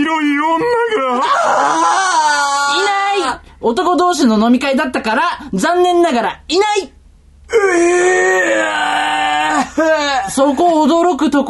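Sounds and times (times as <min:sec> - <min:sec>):
person screaming: 0:00.4 - 0:03.4, 0:07.5 - 0:10.3
speech: 0:03.6 - 0:06.9, 0:07.5 - 0:09.2, 0:09.8 - 0:11.4.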